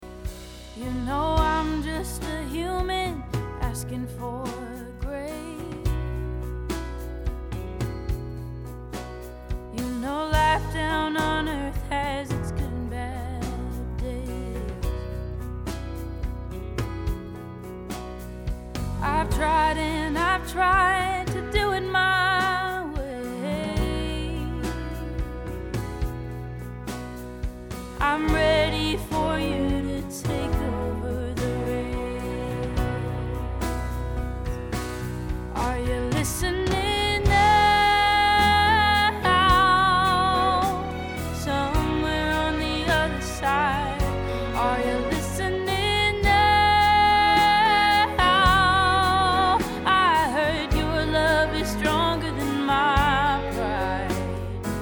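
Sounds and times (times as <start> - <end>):
track recorded with virtual Telefunken 251 mic: 0.0 - 54.8.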